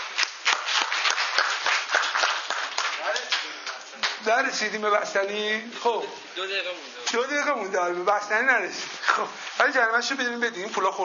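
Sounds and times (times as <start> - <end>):
group clapping for a participant: 0.0 - 4.3
speech: 4.2 - 11.0.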